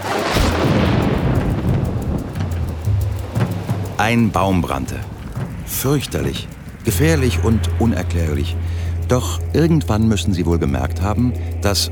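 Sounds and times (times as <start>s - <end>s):
lightning strike thunder: 0.0s - 8.0s
speech: 4.1s - 5.1s, 5.7s - 11.9s.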